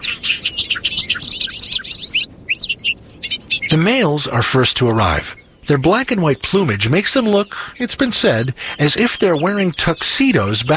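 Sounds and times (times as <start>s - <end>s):
bobolink song in a large hayfield in western New York: 0.0s - 10.7s
speech: 3.7s - 10.7s.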